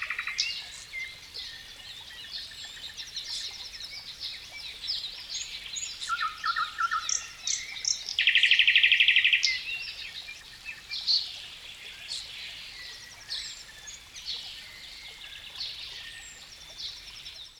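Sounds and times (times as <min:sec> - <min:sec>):
birds singing in chorus: 0:00.0 - 0:17.5.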